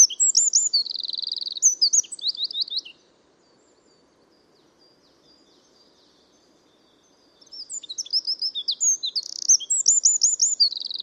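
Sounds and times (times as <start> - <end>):
Eurasian wren (Troglodytes troglodytes) song: 0.0 - 11.0.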